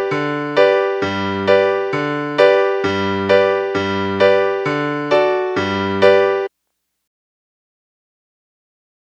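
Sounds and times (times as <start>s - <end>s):
musical accompaniment: 0.0s - 6.5s.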